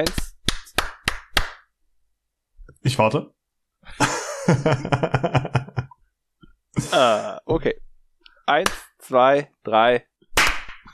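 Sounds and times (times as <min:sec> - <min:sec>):
speech: 0:00.0 - 0:00.2, 0:02.8 - 0:05.6, 0:06.8 - 0:07.8, 0:08.5 - 0:10.1
hand clapping: 0:00.0 - 0:01.7, 0:08.6 - 0:08.9, 0:10.4 - 0:10.9
laughter: 0:03.9 - 0:05.9.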